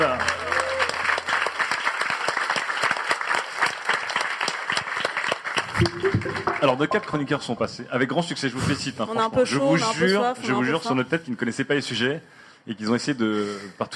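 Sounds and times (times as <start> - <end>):
audience applause: 0.0 - 7.5
speech: 6.6 - 13.9.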